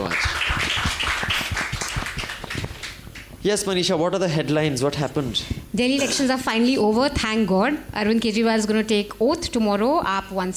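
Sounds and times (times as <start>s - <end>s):
round of applause: 0.0s - 3.4s
speech: 3.4s - 10.5s.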